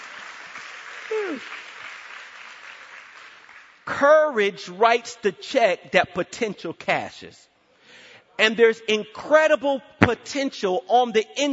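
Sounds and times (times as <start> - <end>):
audience clapping: 0.0 - 4.0
speech: 1.3 - 1.6, 3.9 - 7.5, 8.4 - 11.5.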